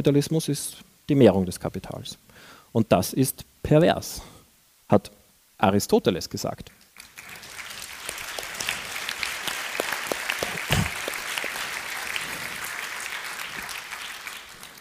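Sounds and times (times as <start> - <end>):
speech: 0.0 - 4.3, 4.9 - 6.8
audience applause: 7.0 - 14.7.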